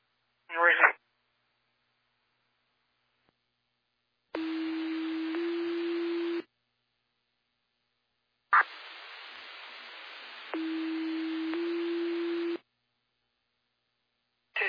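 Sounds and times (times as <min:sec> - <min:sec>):
hissing radio channel static: 0:00.5 - 0:01.0, 0:08.5 - 0:11.6
fire dispatch paging tones paging Emory Fire: 0:04.4 - 0:06.5, 0:10.6 - 0:12.6.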